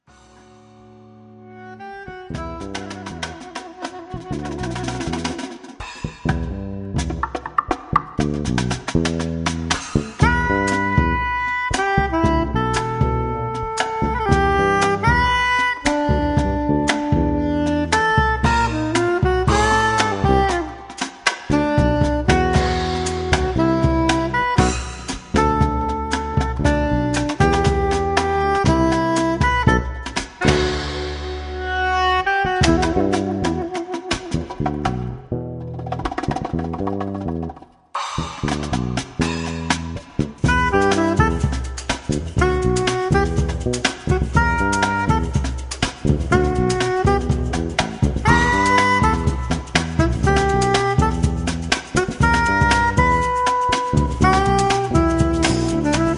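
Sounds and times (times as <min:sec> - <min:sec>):
jazz music: 0:00.4 - 0:56.1.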